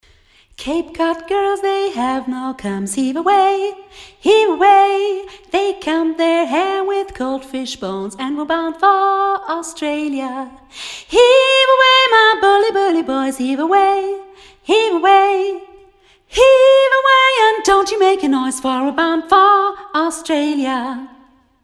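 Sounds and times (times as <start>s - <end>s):
singing: 0.6s - 21.6s.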